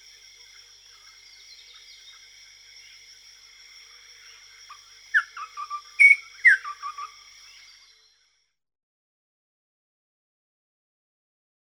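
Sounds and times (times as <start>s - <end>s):
western nicator: 5.1s - 8.3s.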